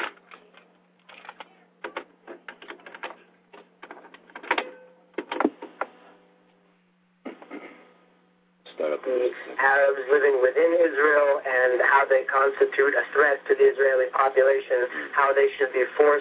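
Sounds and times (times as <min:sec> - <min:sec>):
cassette tape being turned over in a tape recorder: 0:00.0 - 0:05.9
low hum: 0:03.1 - 0:16.1
speech: 0:09.0 - 0:16.1.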